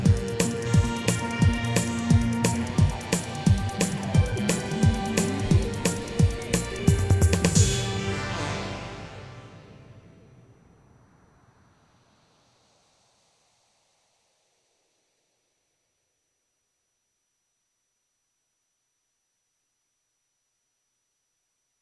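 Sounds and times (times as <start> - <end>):
instrumental music: 0.0 - 9.7.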